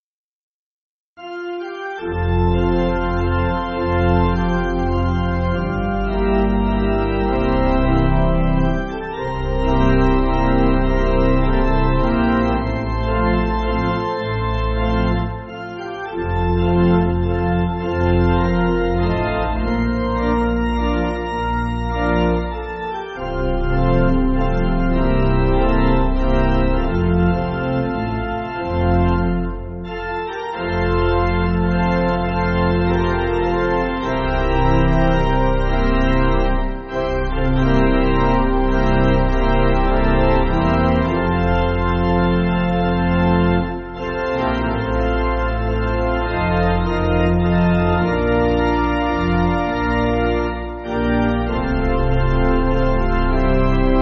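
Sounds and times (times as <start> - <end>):
pipe organ backing music: 1.2 - 54.0.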